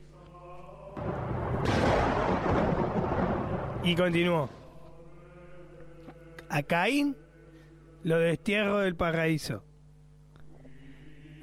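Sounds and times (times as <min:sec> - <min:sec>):
thunder clap: 0:01.0 - 0:04.7
speech: 0:03.8 - 0:04.6, 0:06.5 - 0:07.2, 0:08.0 - 0:09.7.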